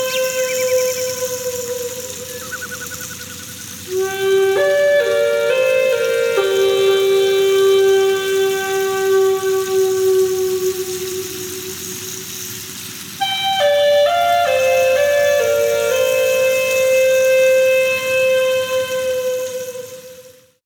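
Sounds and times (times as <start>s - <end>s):
native flute playing: 0.0s - 20.6s.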